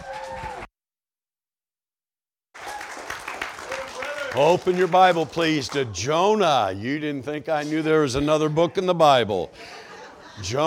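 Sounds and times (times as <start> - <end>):
crowd applause: 2.6 - 6.1
speech: 4.4 - 9.8, 10.4 - 10.6
laughter: 8.1 - 10.6.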